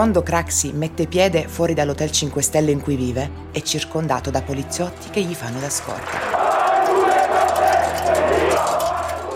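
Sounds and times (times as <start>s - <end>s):
speech: 0.0s - 6.4s
crowd shouting: 6.0s - 9.3s.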